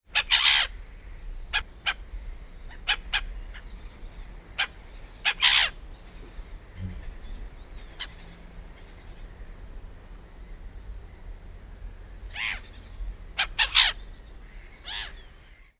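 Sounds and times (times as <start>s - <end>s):
black-headed gull calling: 0.1s - 2.0s, 2.7s - 3.8s, 4.5s - 9.5s, 12.3s - 15.7s
other birds in background: 0.1s - 15.7s.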